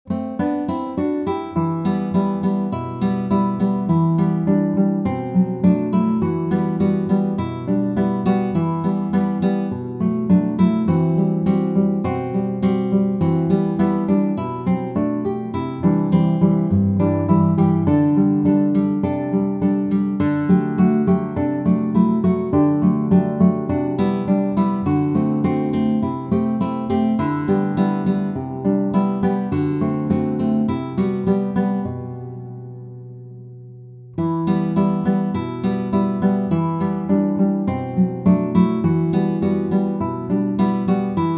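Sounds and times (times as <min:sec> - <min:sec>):
solo guitar: 0:00.0 - 0:41.3.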